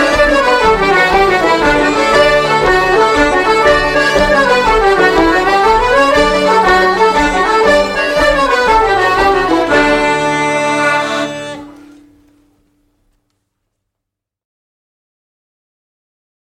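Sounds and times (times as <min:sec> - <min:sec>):
jig tune: 0:00.0 - 0:12.5.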